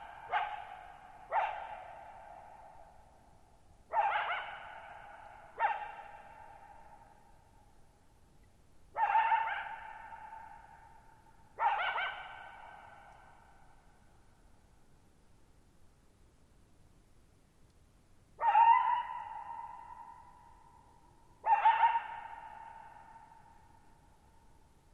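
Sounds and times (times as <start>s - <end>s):
coyote barking: 0.0s - 2.8s, 3.9s - 6.9s, 9.0s - 10.8s, 11.6s - 13.4s, 18.4s - 20.6s, 21.4s - 23.4s.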